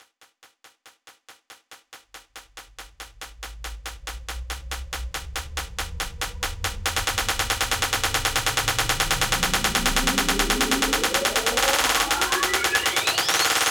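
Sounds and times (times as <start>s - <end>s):
snare drum roll in 140bpm drum loop: 4.0s - 13.6s.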